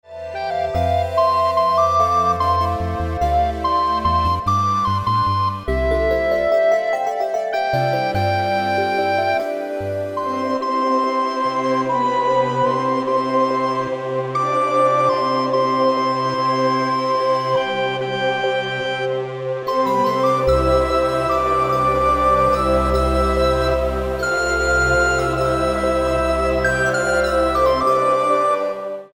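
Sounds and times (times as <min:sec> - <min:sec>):
recorder ensemble: 0:00.1 - 0:29.1.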